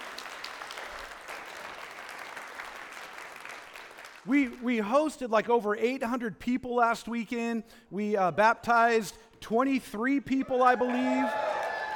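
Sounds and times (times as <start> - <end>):
church congregation clapping: 0.0 - 5.1, 11.0 - 11.9
speech: 4.2 - 11.5.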